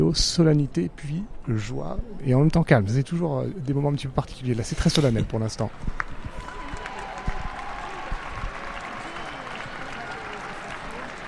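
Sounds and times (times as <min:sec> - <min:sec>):
speech: 0:00.1 - 0:06.1
crowd applauding a parade: 0:05.9 - 0:11.2.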